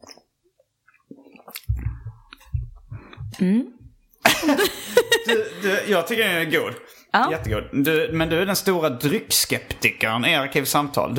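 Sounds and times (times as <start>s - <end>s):
sipping and swallowing IPA beer: 0.0s - 3.2s
speech: 3.4s - 3.8s, 4.4s - 11.1s
laughter: 4.2s - 6.0s.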